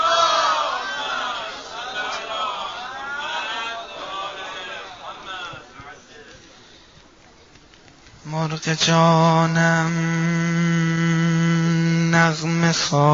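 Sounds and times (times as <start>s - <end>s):
crowd reciting salawat aloud together: 0.0s - 6.6s, 8.2s - 13.1s
speech: 8.5s - 10.8s, 12.2s - 13.1s.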